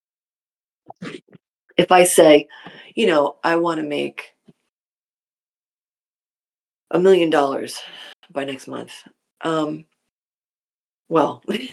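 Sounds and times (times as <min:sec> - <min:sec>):
throat clearing: 0:00.9 - 0:01.4
speech: 0:01.0 - 0:04.3, 0:06.9 - 0:09.9, 0:11.1 - 0:11.7.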